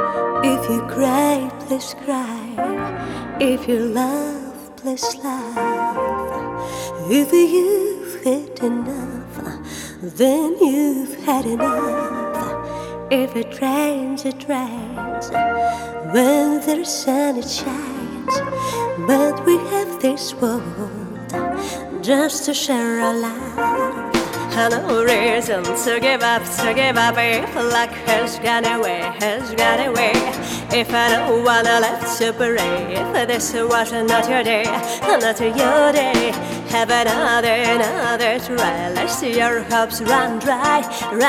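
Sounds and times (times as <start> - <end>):
person singing: 0.1 - 41.2.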